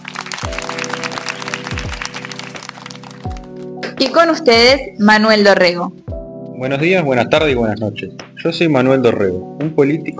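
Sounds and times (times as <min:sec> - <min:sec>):
applause: 0:00.0 - 0:04.2
speech: 0:04.0 - 0:06.0, 0:06.6 - 0:10.1.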